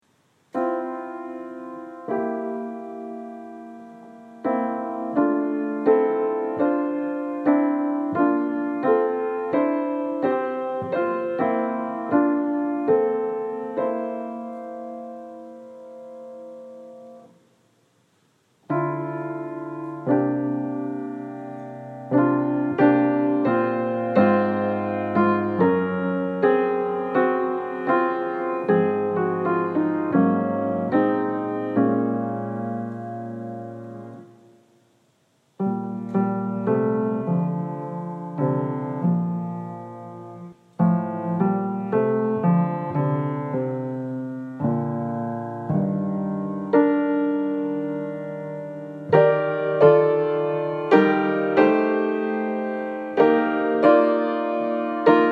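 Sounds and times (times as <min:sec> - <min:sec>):
piano: 0:00.0 - 0:55.3.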